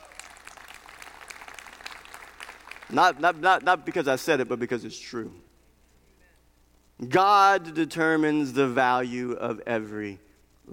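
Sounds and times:
audience clapping: 0.0s - 3.4s
speech: 2.9s - 5.5s, 7.0s - 10.7s.

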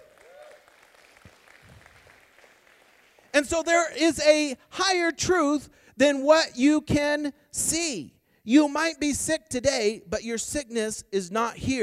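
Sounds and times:
audience clapping: 0.0s - 3.4s
speech: 3.4s - 11.8s.

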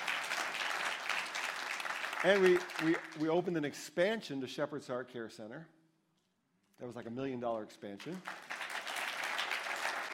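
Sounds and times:
crowd applauding in a large room: 0.0s - 3.3s, 8.1s - 10.1s
speech: 2.2s - 5.8s, 6.8s - 8.4s.

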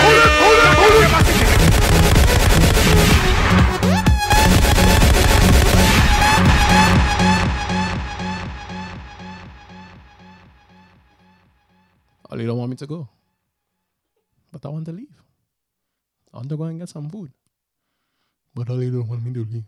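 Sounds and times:
gunshot sound effects fired off by a DJ: 0.0s - 8.6s
loud dense music during a live music stream: 0.0s - 10.4s
speech: 12.8s - 13.2s, 14.5s - 15.2s, 16.3s - 17.4s, 18.6s - 19.6s.

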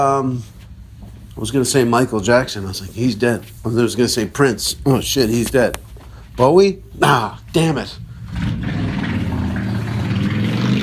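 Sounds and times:
speech: 0.0s - 0.6s, 1.4s - 8.8s
loud motorcycle engine revving past: 8.2s - 10.8s.

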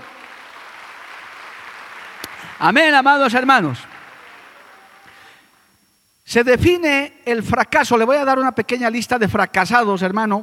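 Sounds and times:
audience applause: 0.0s - 5.1s
speech: 2.6s - 3.9s, 6.3s - 10.4s.

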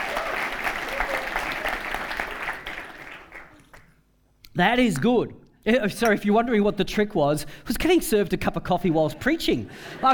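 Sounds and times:
audience applause: 0.0s - 3.8s
speech: 4.6s - 10.1s.

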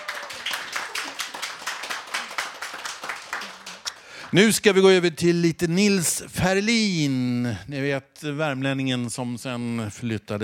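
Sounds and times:
audience applause: 0.0s - 4.4s
speech: 4.3s - 10.4s.

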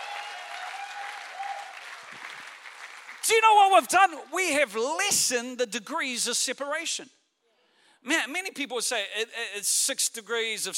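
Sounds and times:
audience applause: 0.0s - 3.8s
speech: 3.2s - 7.2s, 8.0s - 10.7s.

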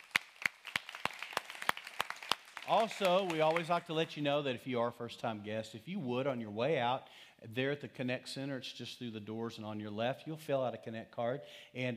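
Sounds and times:
audience applause: 0.0s - 3.9s
sharp hand claps: 0.0s - 4.1s
speech: 2.7s - 11.9s.

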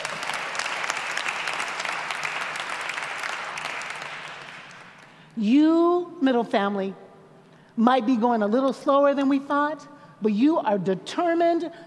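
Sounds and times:
audience clapping: 0.0s - 5.2s
speech: 5.4s - 7.0s, 7.8s - 11.8s.

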